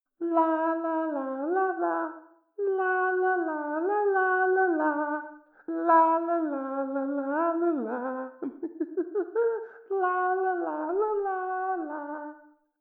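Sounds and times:
person singing la la la: 0.2 - 12.6
laughter: 8.4 - 9.7.

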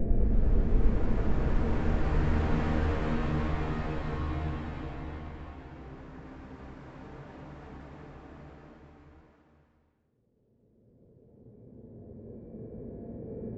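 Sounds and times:
tonal danger sound: 0.0 - 9.3.

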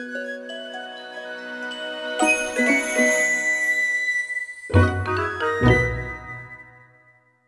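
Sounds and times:
minigame chicks win jingle: 2.1 - 3.7, 4.7 - 6.4.

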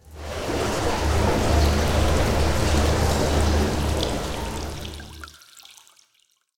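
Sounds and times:
sewer draining: 0.0 - 5.4.

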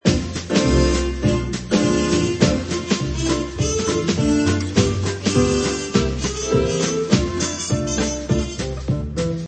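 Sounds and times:
Charleston music on gramophone: 0.0 - 9.4.

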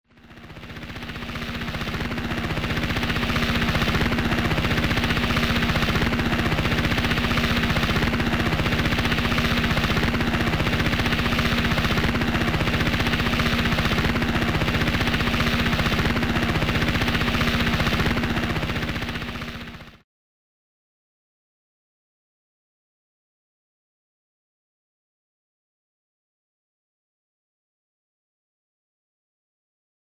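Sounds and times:
helicopter: 0.0 - 20.0.

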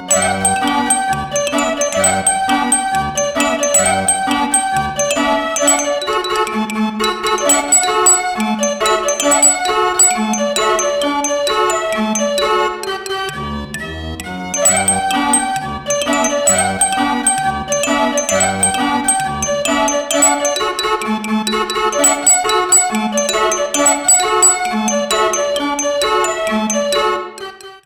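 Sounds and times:
circus music: 0.1 - 13.1, 14.6 - 27.4.

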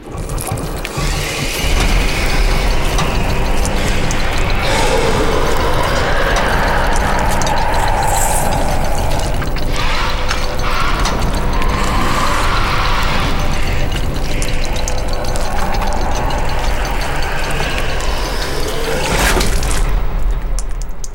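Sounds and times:
caged creature exiting: 0.0 - 20.8.

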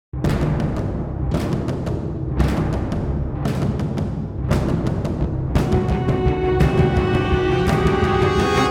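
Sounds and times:
string instrument: 0.2 - 8.7.

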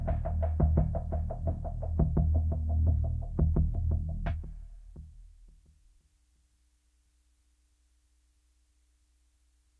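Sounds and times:
pulsing music bed: 0.0 - 5.3.

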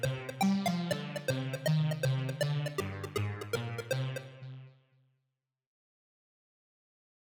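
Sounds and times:
synths: 0.0 - 4.7.

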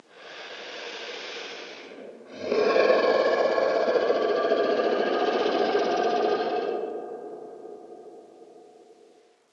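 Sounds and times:
monster: 2.4 - 7.5.

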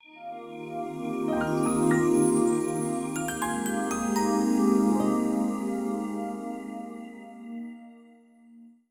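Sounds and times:
job accepted jingle: 1.4 - 6.9.

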